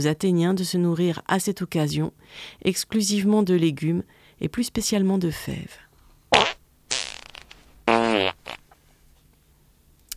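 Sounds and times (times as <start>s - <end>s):
speech: 0.0s - 5.9s
fart: 6.3s - 8.8s.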